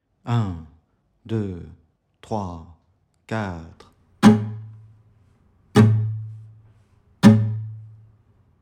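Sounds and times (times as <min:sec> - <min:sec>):
musical exercise: 0:04.2 - 0:05.0, 0:05.7 - 0:08.0.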